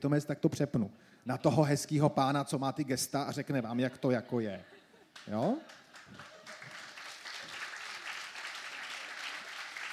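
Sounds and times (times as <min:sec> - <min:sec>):
speech: 0:00.0 - 0:06.3
audience applause: 0:05.4 - 0:09.9.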